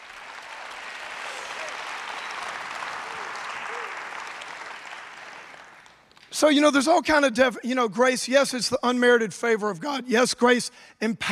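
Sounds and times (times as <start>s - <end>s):
audience applause: 0.0s - 6.2s
speech: 6.4s - 11.3s.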